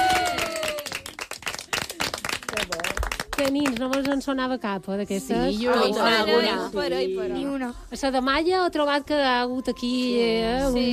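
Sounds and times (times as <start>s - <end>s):
loud applause: 0.0s - 3.5s
speech: 3.4s - 10.9s.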